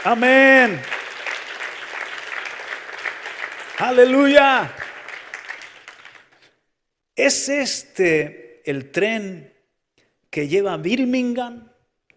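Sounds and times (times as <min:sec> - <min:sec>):
speech: 0:00.0 - 0:01.0, 0:03.8 - 0:04.8, 0:07.2 - 0:09.5, 0:10.3 - 0:11.7
audience applause: 0:00.0 - 0:06.6.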